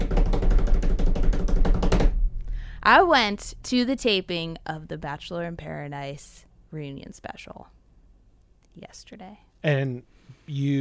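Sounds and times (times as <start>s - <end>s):
drum-roll tapping by hand on a hard surface: 0.0s - 2.2s
speech: 2.9s - 7.8s, 8.8s - 10.7s.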